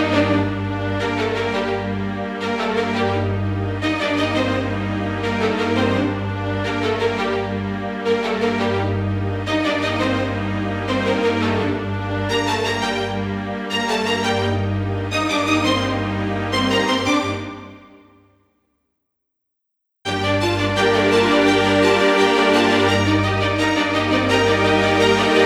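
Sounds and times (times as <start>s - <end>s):
tense cinematic strings: 0.0s - 18.1s, 20.1s - 25.4s.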